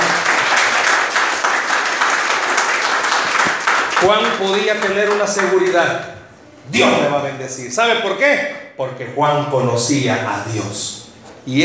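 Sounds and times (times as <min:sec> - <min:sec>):
audience applauding: 0:00.0 - 0:06.0
speech: 0:04.0 - 0:11.6.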